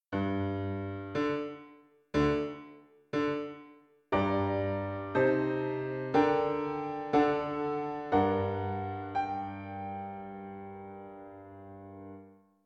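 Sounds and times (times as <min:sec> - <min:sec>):
piano: 0:00.0 - 0:12.6.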